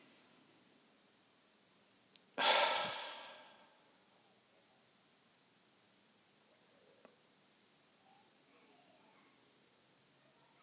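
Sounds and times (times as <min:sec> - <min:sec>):
sniff in through the nose in a guided breathing exercise: 0:02.4 - 0:03.6.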